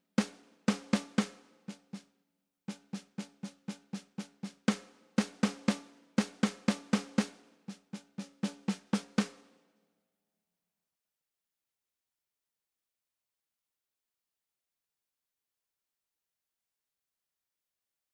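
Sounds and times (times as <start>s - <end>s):
snare drum: 0.0s - 2.1s, 2.7s - 9.6s.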